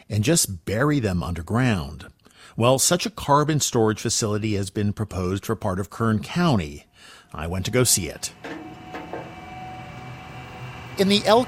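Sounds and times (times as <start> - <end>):
speech: 0.1 - 8.6, 11.0 - 11.4
oil pumps working in an oil field in the Elk Hills: 8.3 - 11.4.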